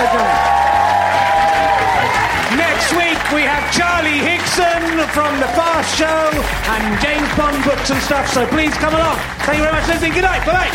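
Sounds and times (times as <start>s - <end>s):
audience applause: 0.0s - 10.7s
audience cheering: 0.0s - 10.7s
speech: 5.0s - 10.7s.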